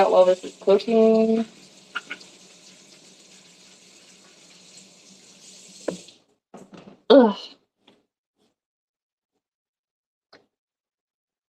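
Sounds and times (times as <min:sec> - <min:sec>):
speech: 0:00.0 - 0:02.1, 0:07.2 - 0:07.6
water running from a kitchen tap over hands being washed: 0:00.0 - 0:06.2.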